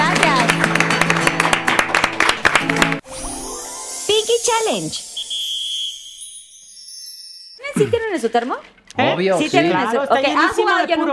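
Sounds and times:
applause: 0.0 - 3.0
speech: 4.5 - 5.1, 7.8 - 11.1.

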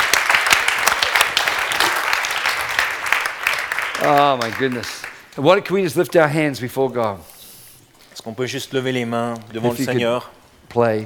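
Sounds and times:
audience applauding: 0.0 - 5.3
speech: 4.0 - 7.3, 8.2 - 11.0.

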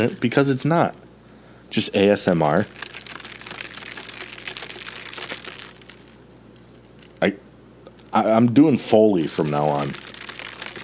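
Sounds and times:
speech: 0.0 - 1.0, 1.7 - 3.0, 7.2 - 7.4, 8.2 - 10.0
melting ice crackling and fizzing in a drink: 2.3 - 6.2, 9.2 - 10.8.

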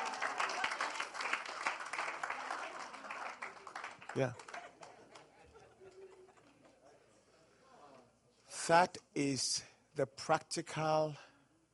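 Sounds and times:
audience clapping: 0.0 - 5.6
speech: 4.2 - 4.5, 8.7 - 11.3
laughter: 4.3 - 6.9.

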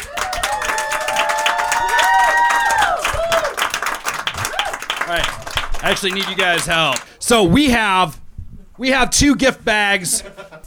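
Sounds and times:
audience applause: 0.0 - 7.2
speech: 5.1 - 8.2, 8.8 - 10.6.

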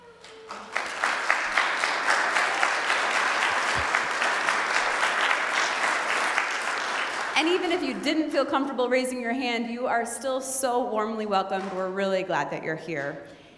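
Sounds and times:
audience applause welcoming newcomers: 0.0 - 7.8
speech: 7.4 - 13.4.

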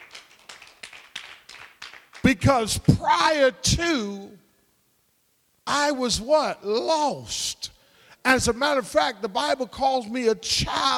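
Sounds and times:
audience clapping hands in a steady quick rhythm: 0.0 - 3.0
speech: 2.3 - 4.4, 5.7 - 10.9.

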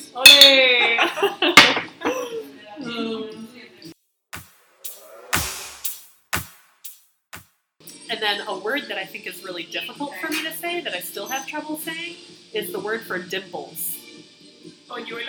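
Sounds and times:
glasses clinking: 0.0 - 0.8, 1.6 - 2.3
speech: 0.2 - 1.4, 8.3 - 13.9, 14.9 - 15.2
laughter: 0.6 - 2.6.

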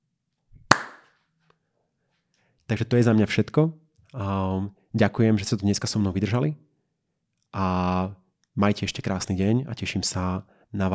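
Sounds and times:
single hand clap: 0.7 - 1.1
speech: 2.7 - 6.7, 7.5 - 10.9.

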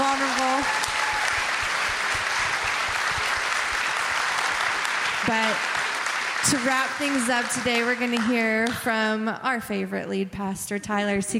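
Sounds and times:
round of applause: 0.0 - 9.0
speech: 5.3 - 5.7, 6.4 - 11.3.

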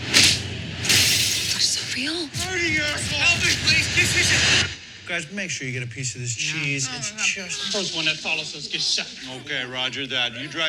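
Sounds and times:
door being broken in: 0.0 - 1.8
speech: 2.0 - 10.6.

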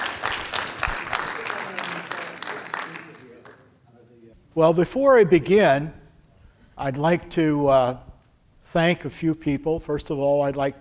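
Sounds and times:
audience clapping to welcome a guest speaker at a church service: 0.0 - 3.8
speech: 4.6 - 6.0, 6.8 - 8.1, 8.7 - 10.7.

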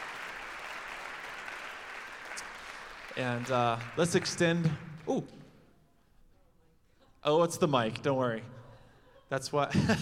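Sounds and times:
faint audience applause welcoming a speaker to the stage: 0.0 - 5.2
speech: 3.2 - 5.4, 7.2 - 8.6, 9.3 - 10.0
laughter: 8.6 - 10.0.

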